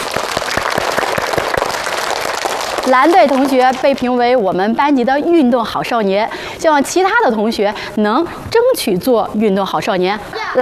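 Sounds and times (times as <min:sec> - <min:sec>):
students applauding in a classroom: 0:00.0 - 0:04.0
speech: 0:02.9 - 0:10.6.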